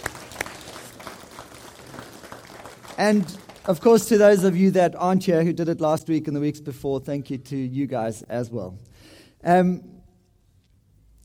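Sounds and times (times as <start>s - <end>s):
audience applause: 0.0s - 4.3s
speech: 3.0s - 9.9s.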